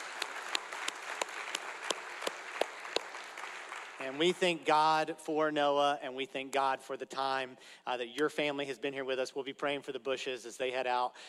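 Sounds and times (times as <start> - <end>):
audience applause: 0.0 - 4.4
speech: 4.0 - 11.2.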